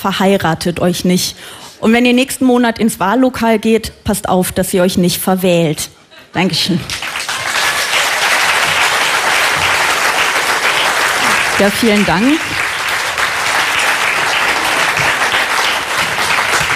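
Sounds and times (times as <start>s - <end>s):
speech: 0.0s - 7.1s, 11.6s - 12.6s
audience applause: 7.0s - 16.7s.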